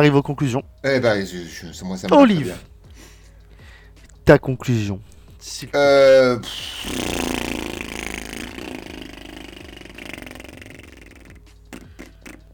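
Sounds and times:
speech: 0.0s - 2.7s, 4.3s - 7.5s
voice imitating a motorbike struggling to start: 6.4s - 12.5s.

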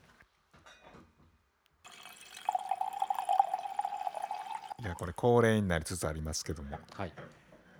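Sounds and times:
Languedoc wine being poured from a bottle: 1.9s - 5.1s
speech: 4.8s - 7.4s.

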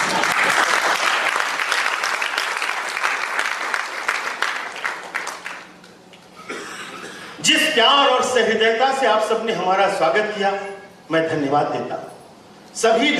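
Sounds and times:
audience applause at a speech: 0.0s - 5.8s
speech: 7.8s - 12.1s, 12.8s - 13.1s.

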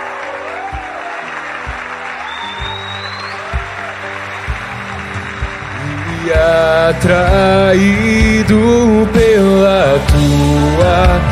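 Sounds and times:
audience applauding: 0.0s - 8.3s
sustained musical tones: 0.0s - 11.1s
speech: 6.9s - 11.2s.

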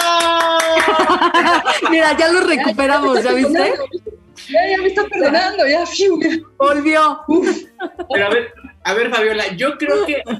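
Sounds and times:
applause, hands clapping: 0.0s - 1.8s, 3.7s - 4.6s
laughter: 0.0s - 6.5s, 7.3s - 10.3s
speech: 1.0s - 10.3s.

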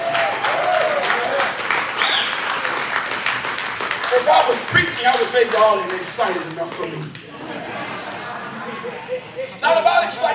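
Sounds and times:
crowd clapping: 0.0s - 10.3s
faint whoops and whistles: 2.0s - 2.4s
speech: 4.2s - 7.2s, 9.1s - 10.3s
laughter: 6.3s - 10.3s.

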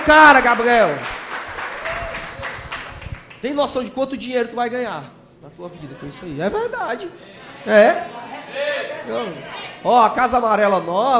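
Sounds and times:
speech: 0.0s - 1.1s, 3.4s - 11.1s
audience applause: 0.0s - 3.4s.

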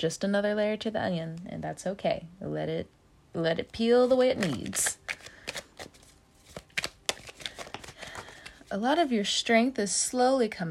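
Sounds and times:
speech: 0.0s - 5.2s, 8.7s - 10.6s
tarot cards being shuffled and drawn: 4.0s - 9.1s.

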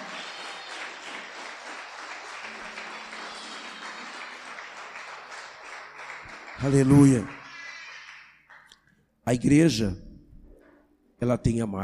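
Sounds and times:
audience applauding: 0.0s - 8.8s
speech: 6.6s - 7.4s, 9.3s - 10.1s, 11.2s - 11.8s.

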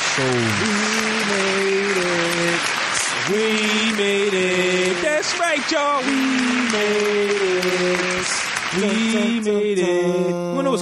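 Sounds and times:
crowd applause: 0.0s - 10.7s
speech: 0.2s - 0.9s, 3.3s - 4.5s, 5.3s - 10.8s.

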